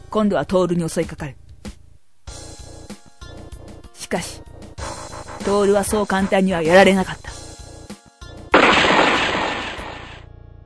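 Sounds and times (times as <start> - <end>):
speech: 0.1 - 1.4, 4.1 - 4.5, 5.4 - 7.3
single handgun gunshot: 8.6 - 10.2.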